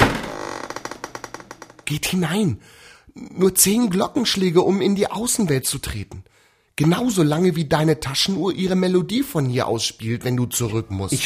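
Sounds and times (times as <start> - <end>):
heavy wooden door pushed open: 0.0 - 1.9
speech: 1.9 - 11.2.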